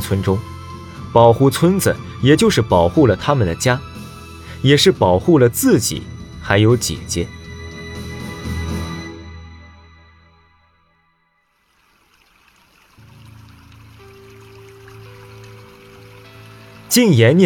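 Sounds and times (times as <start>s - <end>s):
speech: 0.1s - 4.0s, 4.6s - 7.4s, 17.0s - 17.4s
river water flowing: 11.5s - 17.4s.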